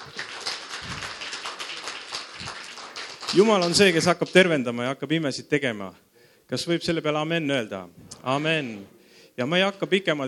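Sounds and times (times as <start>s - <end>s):
audience applause: 0.0s - 4.0s
speech: 3.3s - 10.2s.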